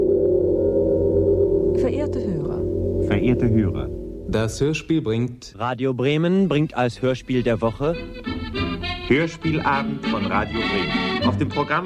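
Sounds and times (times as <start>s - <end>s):
gong resounding: 0.0s - 4.5s
speech: 1.8s - 8.3s, 9.1s - 11.8s.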